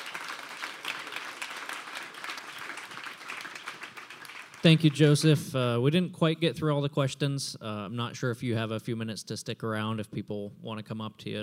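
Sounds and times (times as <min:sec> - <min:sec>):
round of applause: 0:00.0 - 0:05.3
speech: 0:04.6 - 0:11.4.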